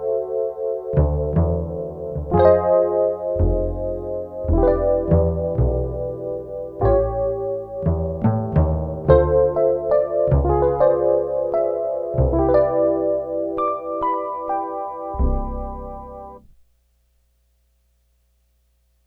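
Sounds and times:
electric piano: 0.0 - 16.6
string bass: 0.9 - 13.7, 15.1 - 16.6.

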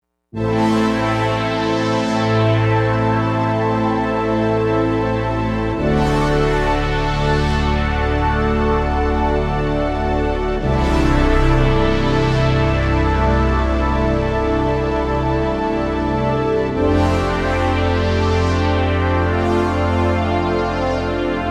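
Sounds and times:
big mouth synth pad: 0.4 - 21.4.

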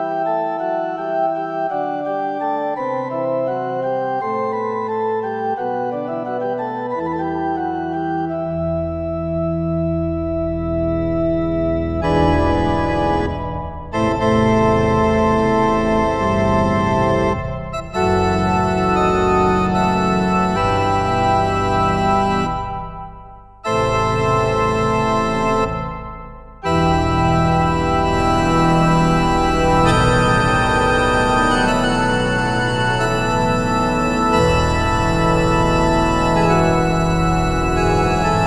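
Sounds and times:
synthesizer organ pipes preset: 0.0 - 38.4.

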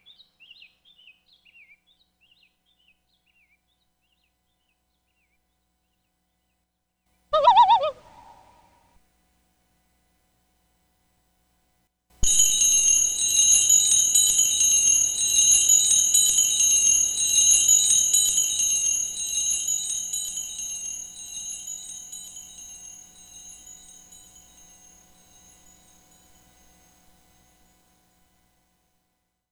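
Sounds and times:
Emulator II sampled birds: 7.4 - 8.6
Emulator II sampled wind chimes: 12.2 - 28.3.

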